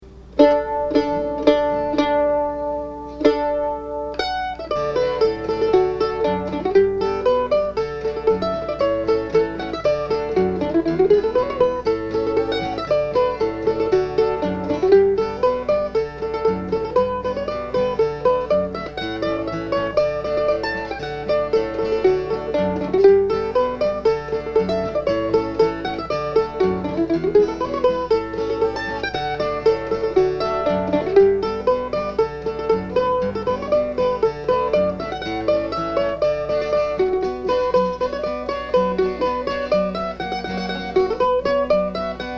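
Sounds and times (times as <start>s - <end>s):
hornpipe tune: 0.0s - 42.3s.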